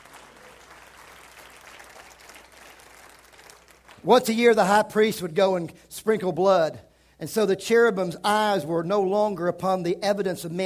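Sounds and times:
audience clapping: 0:00.0 - 0:04.3
speech: 0:04.0 - 0:10.6.

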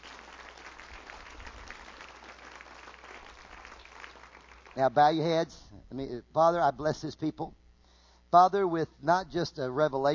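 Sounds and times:
audience clapping: 0:00.0 - 0:05.0
speech: 0:04.8 - 0:07.6, 0:08.3 - 0:10.1.

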